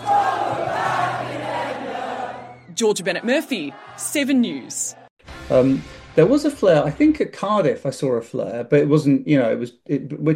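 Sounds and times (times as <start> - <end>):
concertgoers singing together at Southern Cross Station: 0.0 - 5.1
speech: 2.8 - 10.3.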